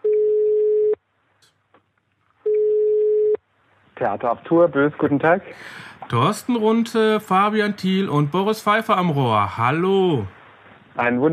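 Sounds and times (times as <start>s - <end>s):
telephone call tone while adding a caller: 0.0s - 1.0s, 2.5s - 3.4s
speech: 4.0s - 10.4s, 11.0s - 11.3s.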